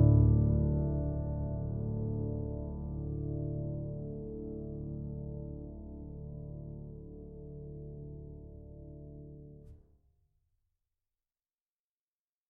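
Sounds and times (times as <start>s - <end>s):
calm nature song: 0.0s - 9.6s.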